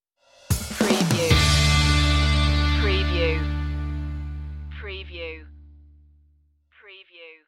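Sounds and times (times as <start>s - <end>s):
rock music stinger: 0.3s - 4.7s.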